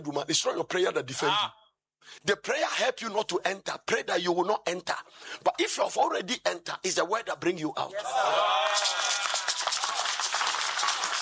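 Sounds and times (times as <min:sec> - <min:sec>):
speech: 0:00.0 - 0:09.4
audience clapping: 0:08.5 - 0:11.1.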